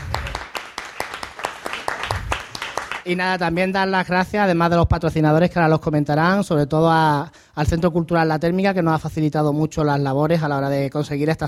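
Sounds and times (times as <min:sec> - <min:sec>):
audience applause: 0:00.0 - 0:03.1
speech: 0:03.1 - 0:11.4.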